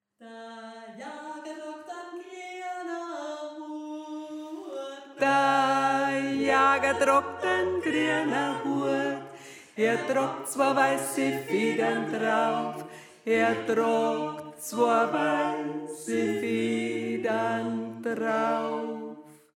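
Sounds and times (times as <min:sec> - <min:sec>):
tenor singing: 0:04.4 - 0:19.0.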